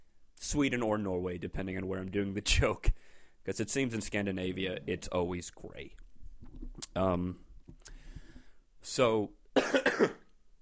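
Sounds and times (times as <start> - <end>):
speech: 0.5 - 6.1, 6.9 - 8.0, 8.8 - 10.2
person coughing: 9.6 - 10.3.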